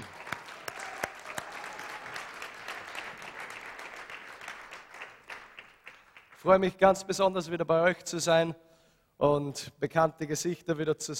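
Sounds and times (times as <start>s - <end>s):
audience applauding: 0.0s - 6.5s
speech: 6.4s - 11.1s.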